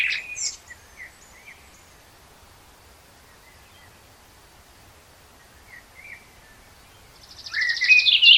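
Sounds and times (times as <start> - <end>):
Common blackbird singing, Turdus merula: 0.0 - 2.1, 5.4 - 8.3.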